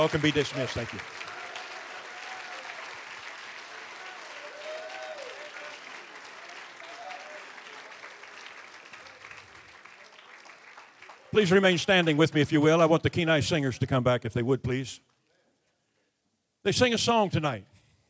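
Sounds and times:
speech: 0.0 - 1.3, 11.4 - 15.1, 16.6 - 17.7
audience applause: 0.0 - 12.8.

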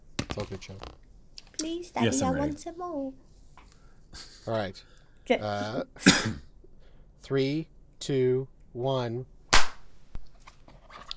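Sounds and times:
speech: 0.4 - 3.3, 4.1 - 6.4, 7.2 - 9.3
single hand clap: 9.6 - 9.8.

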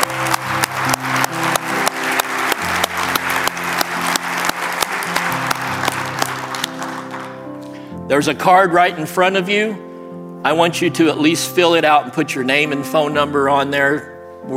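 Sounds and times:
audience applauding: 0.0 - 7.8
speech: 8.1 - 14.5.

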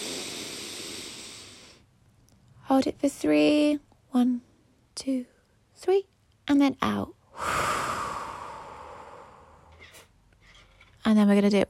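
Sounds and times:
deep inhale through the nose during a guided breathing exercise: 0.0 - 1.9, 7.4 - 10.1
speech: 2.7 - 7.6, 11.0 - 11.6.

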